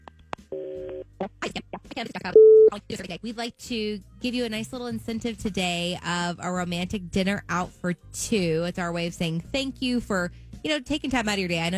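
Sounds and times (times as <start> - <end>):
steady telephone tone: 0.5 - 1.0
speech: 0.5 - 11.7
telephone dial tone: 0.6 - 1.0.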